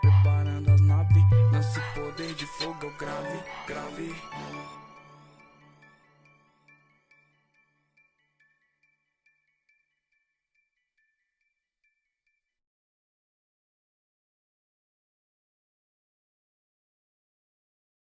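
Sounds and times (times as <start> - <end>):
dub bass: 0.0 - 1.8.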